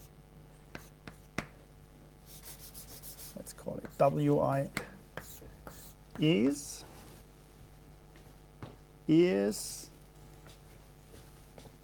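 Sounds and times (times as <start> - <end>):
speech: 4.0 - 4.8, 6.2 - 6.7, 9.1 - 9.8
squeaky stroke handwriting a mathematical formula: 5.2 - 6.0.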